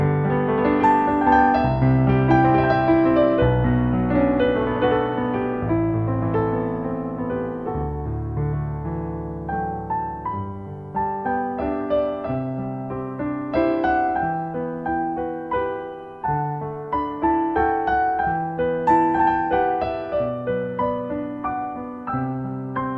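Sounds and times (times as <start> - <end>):
Irish melody: 0.0 - 22.9.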